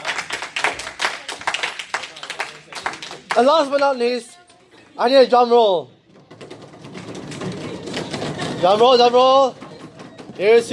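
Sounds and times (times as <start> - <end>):
small group applauding at an award event: 0.0 - 4.2
speech: 3.4 - 4.3, 5.0 - 6.0, 8.6 - 9.6, 10.4 - 10.7.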